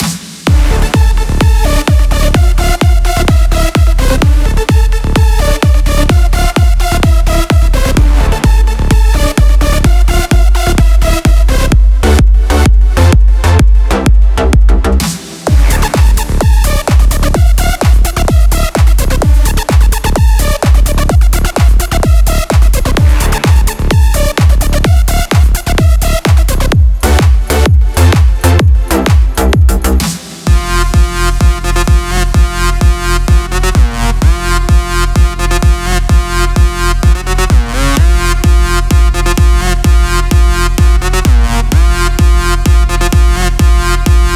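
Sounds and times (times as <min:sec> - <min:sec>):
kick drums: 0:00.0 - 0:44.3.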